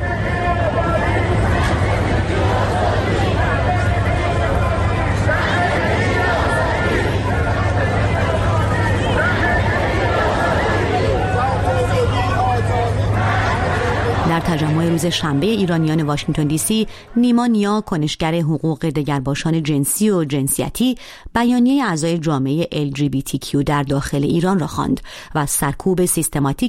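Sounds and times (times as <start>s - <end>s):
rally crowd chanting slogans: 0.0s - 17.4s
low constant hum: 0.0s - 19.3s
speech: 15.0s - 26.6s.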